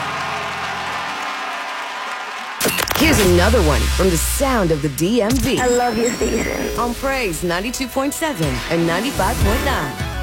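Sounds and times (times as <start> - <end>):
crowd applause: 0.0 - 3.2
speech: 3.2 - 10.0.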